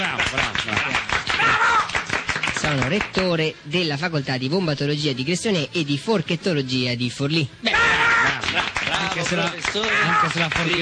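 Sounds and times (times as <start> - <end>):
crowd clapping: 0.0 - 3.3, 7.9 - 10.8
voices cheering and calling out: 1.3 - 2.0, 7.6 - 10.8
speech: 2.7 - 8.0, 9.2 - 10.8.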